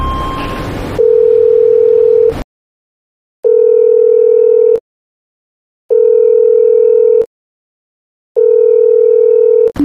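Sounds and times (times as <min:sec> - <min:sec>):
phone ringback tone: 0:00.0 - 0:02.3, 0:03.4 - 0:04.8, 0:05.9 - 0:07.3, 0:08.4 - 0:09.7.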